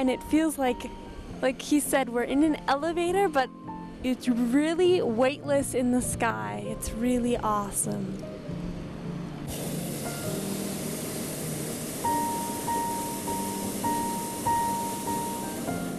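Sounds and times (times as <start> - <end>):
speech: 0.0 - 8.3
hot air balloon burner firing above a city: 8.8 - 15.9.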